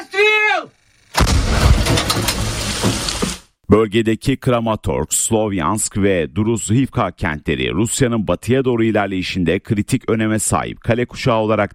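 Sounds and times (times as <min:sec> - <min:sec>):
Ukrainian howitzer firing on Russian positions in Donetsk region: 0:01.1 - 0:03.4
speech: 0:03.7 - 0:11.7.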